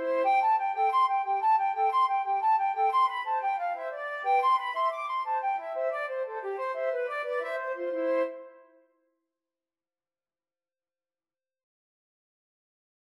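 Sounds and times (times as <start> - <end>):
two flutes playing an Irish jig medley: 0.0 - 8.6
clarinet playing an Irish jig medley: 0.0 - 8.8.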